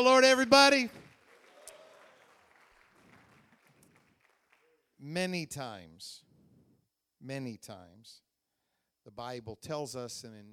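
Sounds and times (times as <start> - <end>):
speech: 0.0 - 1.0, 5.0 - 6.2, 7.2 - 8.2, 9.0 - 10.5
audience applauding to welcome a guest speaker at a church gathering: 0.4 - 4.9.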